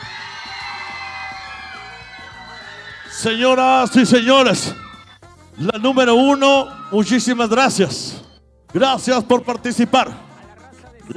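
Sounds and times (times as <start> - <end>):
crowd clapping: 0.0 - 5.0
large crowd cheering with whoops and shouts: 0.0 - 8.3
speech: 3.2 - 4.8, 5.6 - 10.3.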